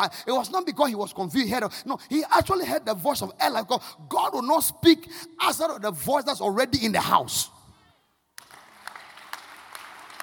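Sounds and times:
speech: 0.0 - 7.6
audience clapping hands: 8.3 - 10.2.

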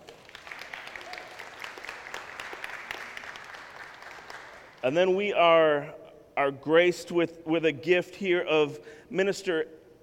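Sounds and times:
congregation applause welcoming its pastor: 0.0 - 4.9
speech: 4.8 - 9.8.

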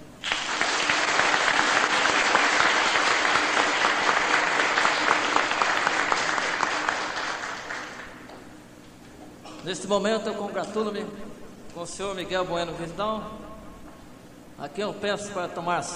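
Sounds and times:
applause: 0.2 - 8.4
speech: 9.7 - 13.4, 14.6 - 15.9.

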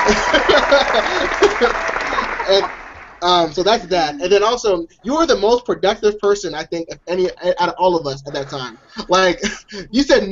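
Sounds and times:
applause: 0.0 - 3.7
laughter: 0.0 - 10.3
speech: 2.5 - 10.3.

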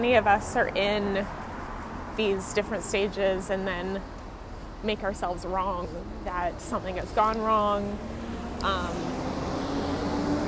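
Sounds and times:
speech: 0.0 - 1.4, 2.2 - 4.2, 4.8 - 9.2
heavy truck rumbling past: 5.2 - 10.4.

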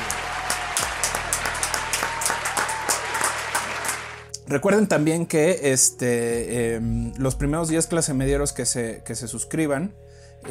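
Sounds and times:
audience applause: 0.0 - 4.3
speech: 4.5 - 10.5.

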